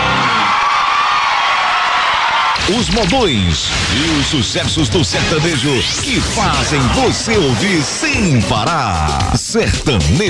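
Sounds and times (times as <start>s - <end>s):
audience applause: 0.0s - 2.6s
audience cheering: 0.0s - 3.0s, 6.3s - 8.9s
speech: 2.7s - 10.2s.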